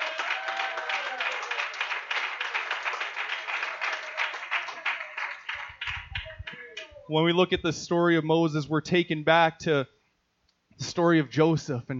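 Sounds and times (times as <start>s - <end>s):
audience clapping hands: 0.0s - 7.0s
speech: 7.1s - 10.0s, 11.0s - 11.9s.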